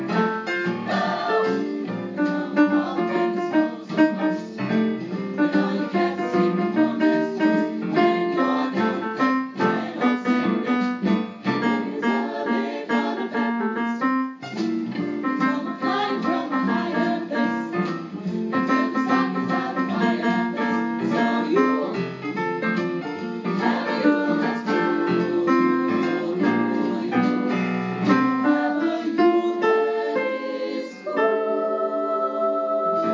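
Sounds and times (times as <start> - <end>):
high piano: 0.0 - 33.1.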